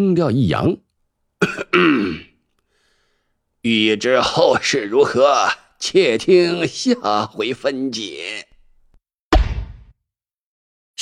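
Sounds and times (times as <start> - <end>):
speech: 0.0 - 0.8, 1.7 - 2.3, 3.6 - 8.5
old man's light cough: 1.4 - 2.4.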